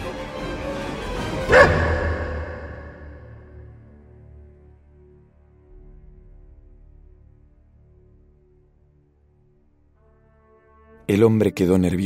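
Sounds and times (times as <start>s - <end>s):
dog barking: 1.5s - 3.6s
speech: 11.1s - 12.0s.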